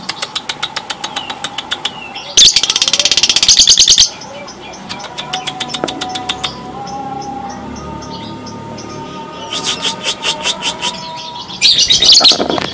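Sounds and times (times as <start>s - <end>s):
Java sparrow song: 0.0s - 12.7s.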